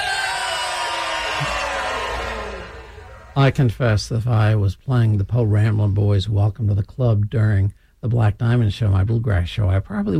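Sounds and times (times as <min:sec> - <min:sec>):
group of people hollering loudly together: 0:00.0 - 0:03.4
speech: 0:03.4 - 0:10.1.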